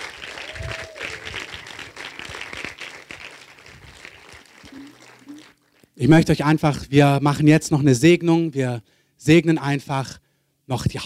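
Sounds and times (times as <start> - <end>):
audience applause: 0.0 - 5.9
speech: 6.0 - 11.0.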